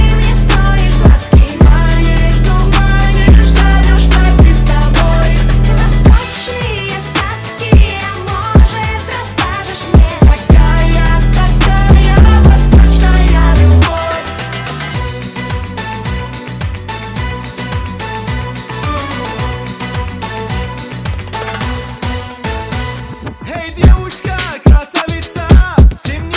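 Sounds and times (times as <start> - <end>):
trap remix: 0.0 - 16.0, 23.2 - 26.3.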